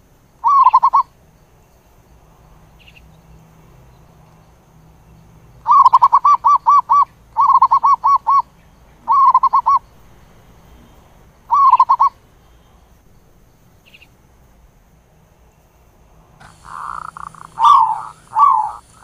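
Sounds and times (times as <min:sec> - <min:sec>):
zebra dove cooing: 0:00.4 - 0:01.0, 0:05.6 - 0:08.5, 0:09.1 - 0:09.8, 0:11.5 - 0:12.2, 0:16.4 - 0:19.0.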